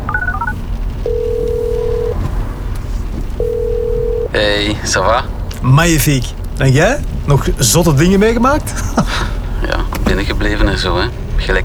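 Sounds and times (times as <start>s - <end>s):
phone dialing beeps: 0.0s - 2.3s, 3.2s - 4.9s
laughter: 3.6s - 11.6s
speech: 4.4s - 9.4s, 10.1s - 11.6s.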